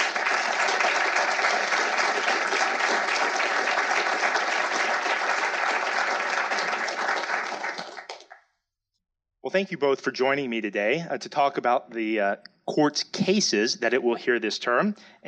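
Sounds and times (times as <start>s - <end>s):
audience applauding as two speakers are welcomed to the stage: 0.0s - 8.4s
speech: 9.5s - 15.2s.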